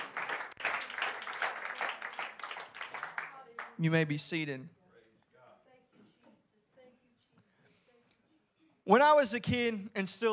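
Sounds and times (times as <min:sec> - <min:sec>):
crowd clapping: 0:00.0 - 0:04.0
speech: 0:03.8 - 0:04.8, 0:08.9 - 0:10.3.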